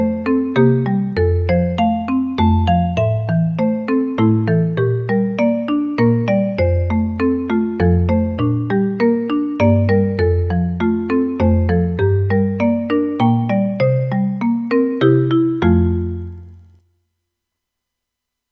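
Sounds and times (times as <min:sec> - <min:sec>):
marimba etude in F major played with four mallets: 0:00.0 - 0:16.5.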